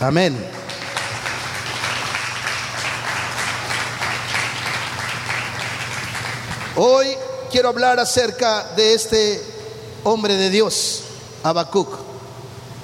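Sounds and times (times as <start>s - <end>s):
speech: 0.0s - 0.6s, 6.8s - 12.1s
audience applauding: 0.5s - 6.8s.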